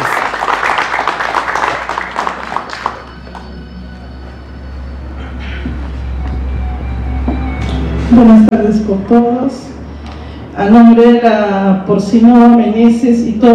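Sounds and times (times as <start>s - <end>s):
audience applause: 0.0s - 3.7s
speech: 8.2s - 9.7s, 10.6s - 13.5s.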